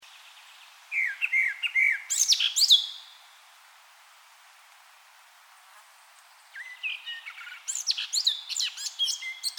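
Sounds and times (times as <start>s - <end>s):
Eurasian blackcap Sylvia atricapilla singing a warble: 0.2s - 3.2s, 6.4s - 9.5s.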